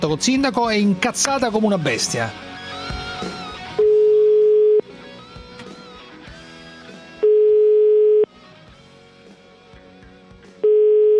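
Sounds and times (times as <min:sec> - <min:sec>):
speech: 0:00.0 - 0:02.5
telephone ringing tone before a call: 0:03.8 - 0:04.8, 0:07.2 - 0:08.3, 0:10.6 - 0:11.1.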